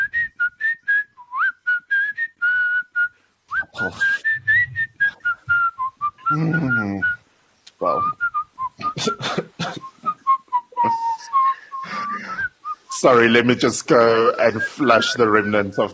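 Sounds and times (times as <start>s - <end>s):
person whistling a marching-style melody: 0.0s - 7.2s, 9.8s - 13.0s, 14.5s - 15.7s
speech: 3.8s - 4.2s, 6.3s - 7.2s, 7.8s - 8.2s, 13.0s - 15.9s
laughter: 6.3s - 7.0s, 8.8s - 10.2s, 10.8s - 15.9s.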